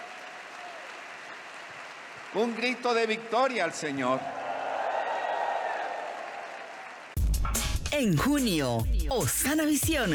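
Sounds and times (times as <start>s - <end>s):
audience applauding: 0.0s - 7.2s
speech: 2.3s - 4.4s, 8.0s - 10.1s.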